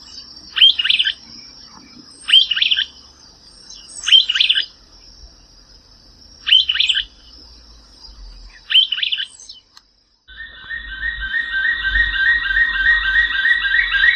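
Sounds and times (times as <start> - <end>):
bird song: 0.0 - 14.1
steady high tone: 10.3 - 14.1.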